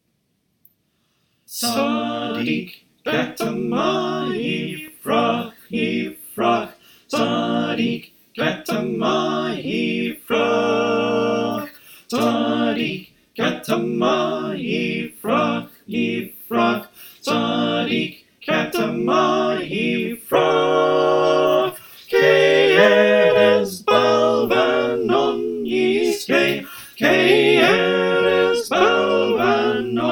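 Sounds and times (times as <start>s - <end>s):
SATB four-part choir singing: 1.5s - 30.0s.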